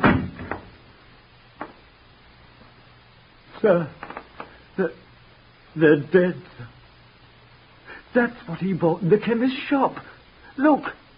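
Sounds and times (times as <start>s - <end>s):
door shutting: 0.0s - 0.7s
speech: 3.6s - 4.1s, 4.8s - 5.0s, 5.8s - 6.8s, 8.2s - 11.0s.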